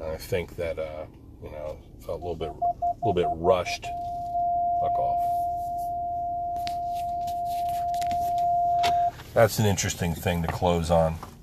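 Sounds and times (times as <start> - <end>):
faint low rumble: 0.0 - 11.4
speech: 0.2 - 4.2, 4.8 - 5.4, 9.3 - 11.3
car front parking sensor alarm beeping: 2.2 - 9.2.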